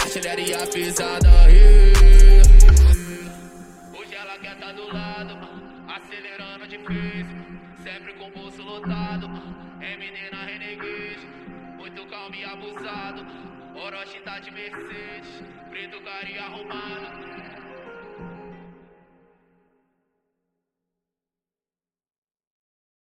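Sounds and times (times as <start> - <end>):
deep bass: 1.2 - 3.0.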